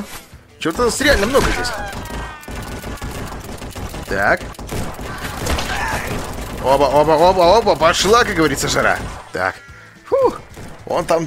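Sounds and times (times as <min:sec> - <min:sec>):
speech: 0:00.6 - 0:02.0, 0:04.1 - 0:04.7, 0:06.6 - 0:11.2
gunfire in a video game shooter: 0:00.8 - 0:09.3.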